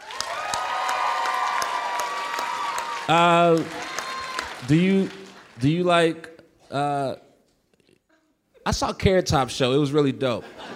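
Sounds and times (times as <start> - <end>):
audience applause: 0.0 - 6.0
speech: 3.1 - 3.9, 4.6 - 7.2, 8.7 - 10.7.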